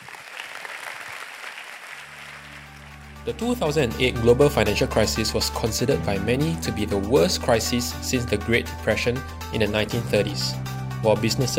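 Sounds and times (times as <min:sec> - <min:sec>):
church audience applause welcoming a speaker: 0:00.0 - 0:03.2
low hum: 0:02.3 - 0:09.4
speech: 0:03.2 - 0:11.5.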